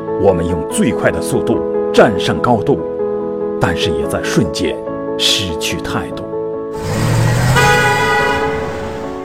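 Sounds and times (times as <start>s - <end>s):
speech: 0.2s - 2.9s, 3.6s - 7.0s
car horns honking: 6.8s - 9.2s.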